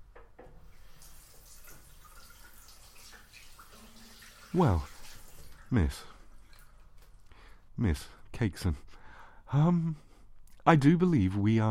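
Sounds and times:
water running from a tap while washing hands: 0.6 - 7.2
speech: 4.5 - 4.9, 5.7 - 6.1, 7.8 - 8.9, 9.5 - 10.0, 10.6 - 11.6.

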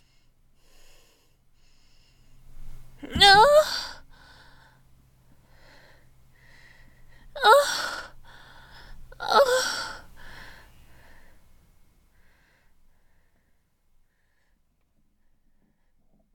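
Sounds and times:
person moaning: 3.0 - 4.0, 7.4 - 8.1, 9.2 - 10.0.

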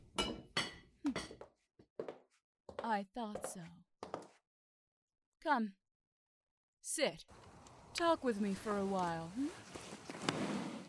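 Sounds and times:
crockery and glass clinking during kitchen chores in a castle: 0.1 - 1.5
speech: 2.8 - 3.8, 5.4 - 5.8, 6.8 - 10.4.

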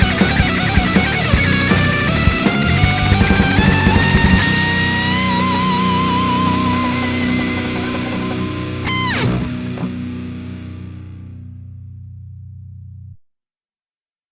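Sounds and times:
metal solo in B minor: 0.0 - 11.4.

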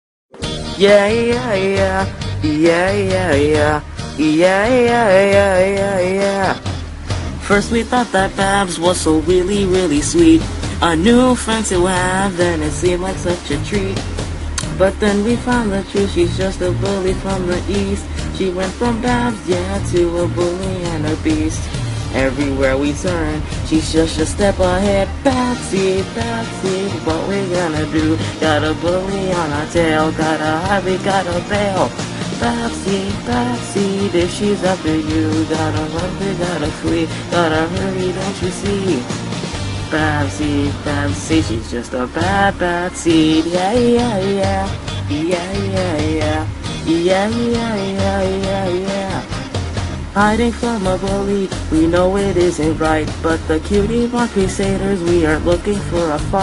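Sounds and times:
person singing a vocal cover: 0.6 - 6.7, 7.4 - 49.4, 50.1 - 56.4.

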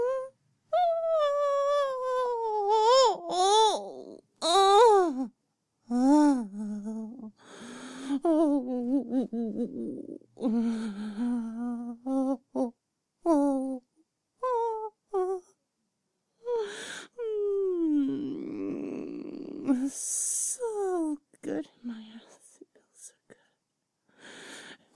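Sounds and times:
woman whimpering: 0.0 - 5.3, 5.9 - 12.7, 14.4 - 15.5, 16.4 - 22.4.

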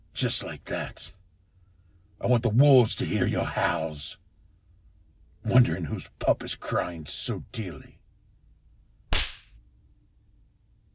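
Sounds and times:
speech: 0.2 - 1.2, 2.2 - 4.2, 5.4 - 8.0
hand spanking on flesh: 9.1 - 9.5.

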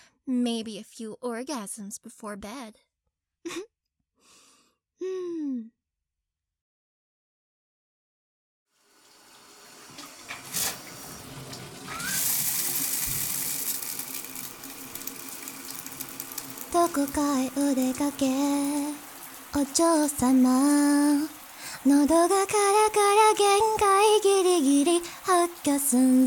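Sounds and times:
speech: 0.3 - 3.7, 5.0 - 5.8, 16.7 - 19.0, 19.6 - 26.2
breathy vocal sounds: 4.3 - 5.7, 21.4 - 21.9
shower water running: 8.7 - 26.2.

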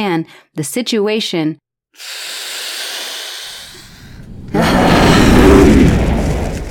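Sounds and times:
speech: 0.0 - 2.4
soft hissing rush: 2.0 - 4.4
dragon breathing a roaring blast of flame indoors: 3.8 - 6.6.

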